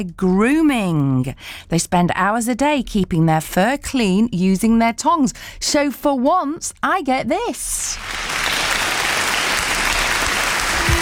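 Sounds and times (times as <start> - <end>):
speech: 0.0 - 8.3
audience applause: 8.0 - 11.0.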